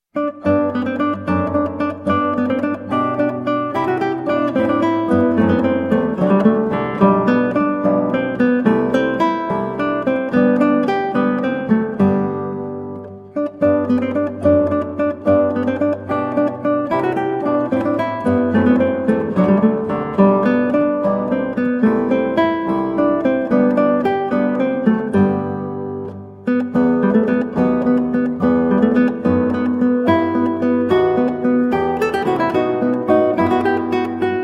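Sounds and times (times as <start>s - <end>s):
guitar playing an allegro: 0.0s - 34.4s.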